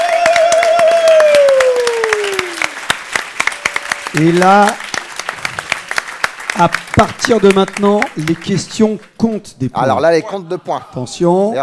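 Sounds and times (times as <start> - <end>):
audience applause: 0.0 - 9.0
speech: 4.2 - 4.8, 6.6 - 11.6.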